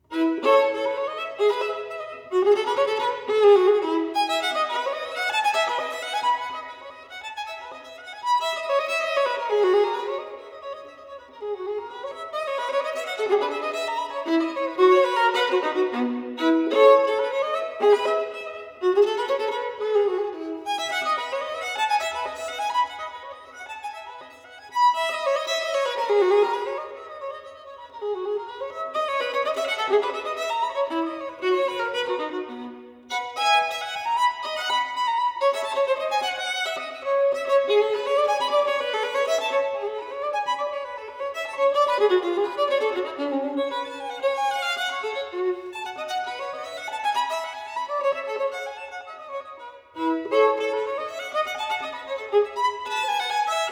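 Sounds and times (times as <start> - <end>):
violin bourrée in E major: 0.0 - 53.6.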